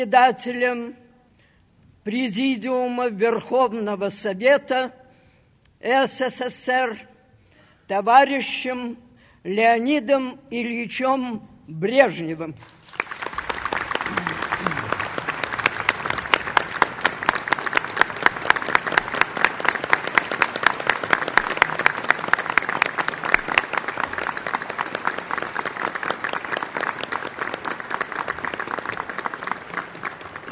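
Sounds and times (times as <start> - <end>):
speech: 0.0 - 1.0, 2.0 - 5.0, 5.8 - 7.1, 7.9 - 12.8
audience applause: 12.6 - 30.5.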